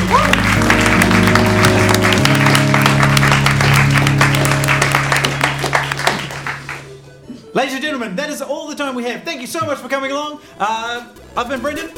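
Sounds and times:
audience applause: 0.0 - 7.0
speech: 7.6 - 11.9.

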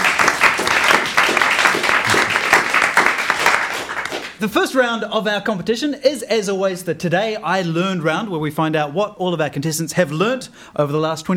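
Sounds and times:
audience applause: 0.0 - 4.4
speech: 4.4 - 11.3.

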